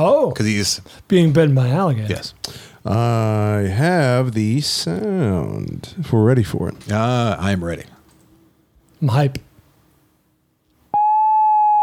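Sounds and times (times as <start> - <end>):
speech: 0.0 - 8.0, 9.0 - 9.5
audio test tone: 10.9 - 11.8.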